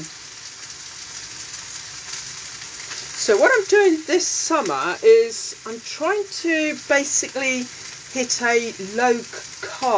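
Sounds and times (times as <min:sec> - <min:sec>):
steak sizzling while cooking: 0:00.0 - 0:09.9
speech: 0:03.2 - 0:09.9.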